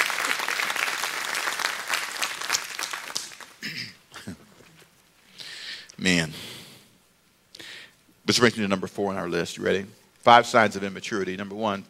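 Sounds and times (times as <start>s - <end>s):
audience clapping: 0.0s - 3.7s
speech: 6.0s - 6.5s, 8.3s - 11.8s.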